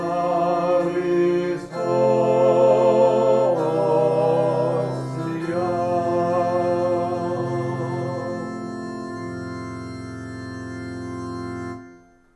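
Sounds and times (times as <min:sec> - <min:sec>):
vocal duet: 0:00.0 - 0:08.7.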